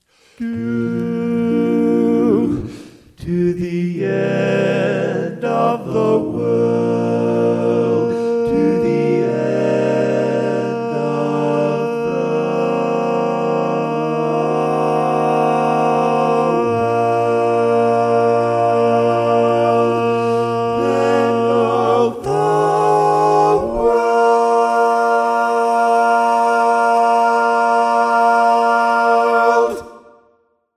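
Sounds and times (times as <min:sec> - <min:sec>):
barbershop lead singing: 0:00.4 - 0:30.1.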